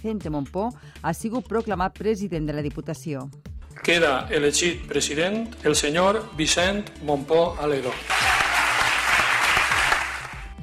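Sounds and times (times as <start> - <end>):
speech: 0.0 - 8.2
crowd applause at a council vote proclamation: 7.8 - 10.6.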